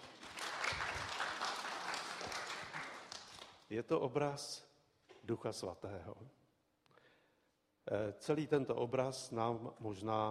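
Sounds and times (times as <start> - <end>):
audience applause: 0.0 - 3.5
speech: 3.7 - 6.4, 7.9 - 10.2.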